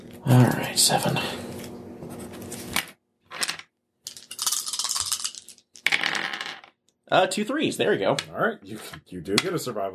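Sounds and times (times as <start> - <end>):
speech: 0.2 - 1.5, 7.1 - 9.9
dice rattling and clattering across a hard surface: 3.3 - 6.8.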